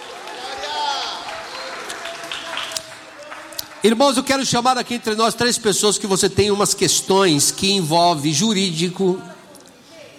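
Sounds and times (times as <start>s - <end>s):
audience applauding: 0.0s - 4.3s
speech: 3.8s - 9.4s.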